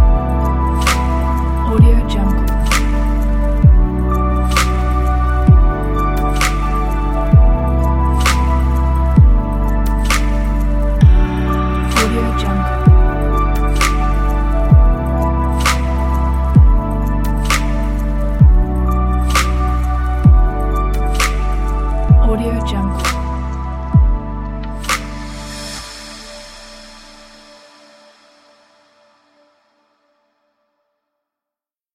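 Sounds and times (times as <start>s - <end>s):
ambient chill electronic music: 0.0s - 29.8s.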